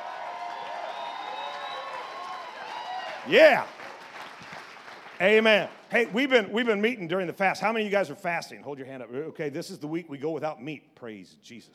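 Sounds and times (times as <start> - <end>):
audience applause: 0.0 - 6.2
speech: 3.2 - 3.8, 5.2 - 11.7.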